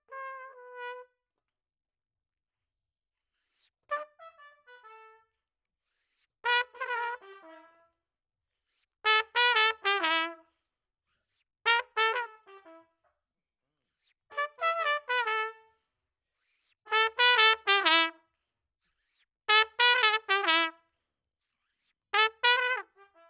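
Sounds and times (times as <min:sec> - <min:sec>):
trumpet: 0:00.0 - 0:01.2, 0:03.9 - 0:05.4, 0:06.4 - 0:08.0, 0:09.1 - 0:10.5, 0:11.7 - 0:13.0, 0:14.3 - 0:15.8, 0:16.9 - 0:18.2, 0:19.5 - 0:20.9, 0:22.2 - 0:23.2.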